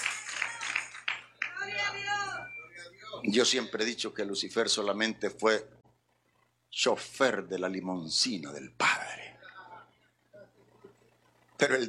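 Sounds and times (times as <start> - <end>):
audience clapping: 0.0 - 1.9
faint steady hum: 0.0 - 11.8
speech: 3.2 - 5.8, 6.8 - 8.9, 11.6 - 11.8.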